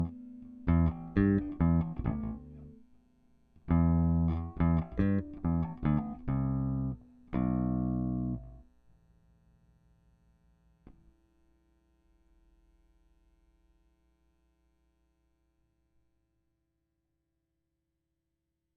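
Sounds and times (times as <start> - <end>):
bass DI through Audient iD14 interface: 0.0 - 3.0, 3.6 - 9.0, 10.6 - 11.4.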